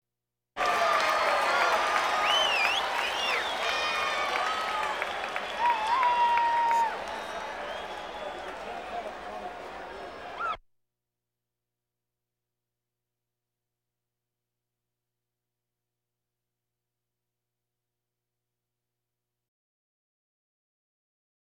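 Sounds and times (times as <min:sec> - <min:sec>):
crowds: 0:00.6 - 0:10.6.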